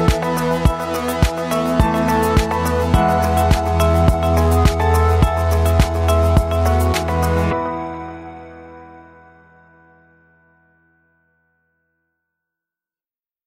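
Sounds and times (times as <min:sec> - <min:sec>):
soft ambient corporate music: 0:00.0 - 0:10.4.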